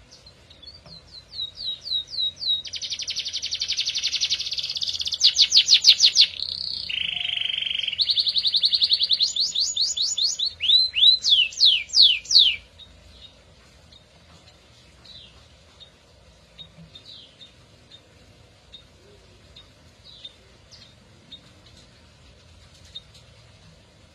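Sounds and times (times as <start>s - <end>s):
Atlantic canary singing: 0.7s - 12.9s.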